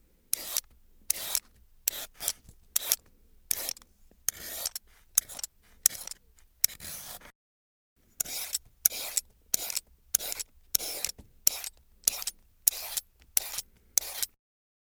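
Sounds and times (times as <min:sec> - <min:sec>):
peeler scraping carrots: 0:00.3 - 0:07.3, 0:08.0 - 0:14.3.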